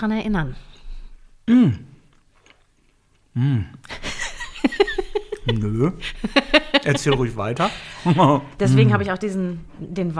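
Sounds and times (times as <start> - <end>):
speech: 0.0 - 0.8, 1.5 - 1.9, 3.4 - 4.1, 4.7 - 10.1
short hummed voice sounds falling in pitch: 1.5 - 1.9, 3.4 - 3.8
chewing biscuits with soft crunching: 2.0 - 3.3
laughter: 3.9 - 9.0.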